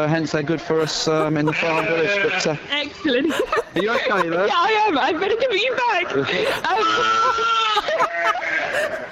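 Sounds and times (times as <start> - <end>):
speech: 0.0 - 9.1
laughter: 0.5 - 9.1
Dorset Horn lamb bleating: 0.8 - 2.8, 6.8 - 9.1.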